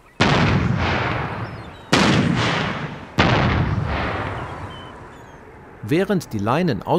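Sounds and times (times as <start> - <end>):
boat-mounted acoustic cannon firing to scare birds: 0.2 - 5.6
speech: 5.9 - 6.9.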